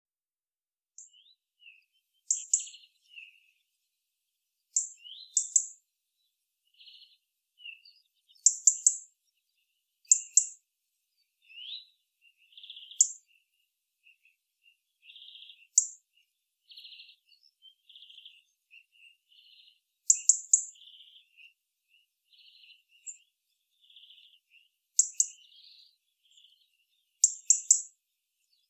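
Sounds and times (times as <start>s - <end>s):
European robin giving sharp ticking calls: 1.9s - 3.6s, 4.7s - 5.8s, 6.6s - 10.6s, 11.4s - 13.5s, 15.0s - 21.6s, 22.3s - 28.6s.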